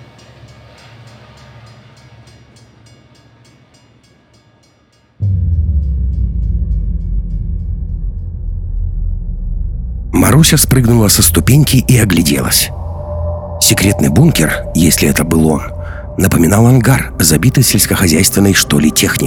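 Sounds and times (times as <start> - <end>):
tram wheels clickety-clack: 0.0 - 4.8
tram rumbling as it pulls into a small depot: 5.2 - 19.2
speech: 10.4 - 12.8, 13.7 - 19.2.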